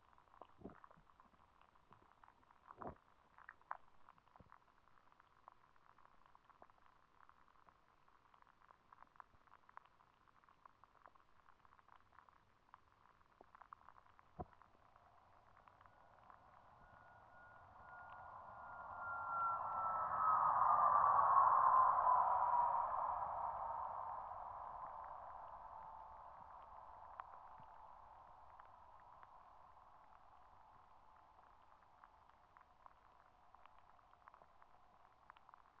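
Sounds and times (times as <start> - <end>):
airplane noise: 16.5 - 24.7.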